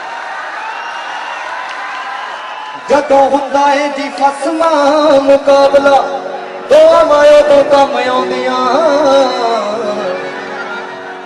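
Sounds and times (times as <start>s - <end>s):
crowd cheering and applauding at a kabaddi event: 0.0s - 5.0s, 10.1s - 11.2s
speech: 2.8s - 9.6s.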